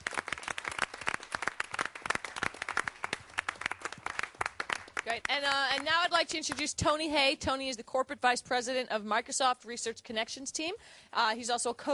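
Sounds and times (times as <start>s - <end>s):
audience applause: 0.0s - 5.9s
speech: 5.1s - 11.9s.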